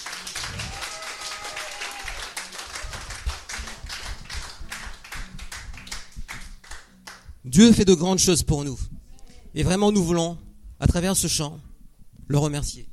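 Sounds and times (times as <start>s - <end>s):
church congregation clapping in praise of God: 0.0s - 7.3s
speech: 7.5s - 8.9s, 9.6s - 11.7s, 12.3s - 12.9s.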